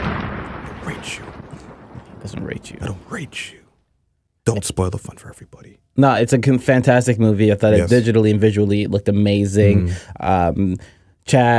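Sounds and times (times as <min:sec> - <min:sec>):
bomb explosion sound effect: 0:00.0 - 0:03.8
speech: 0:00.9 - 0:01.4, 0:02.2 - 0:03.6, 0:04.5 - 0:11.5.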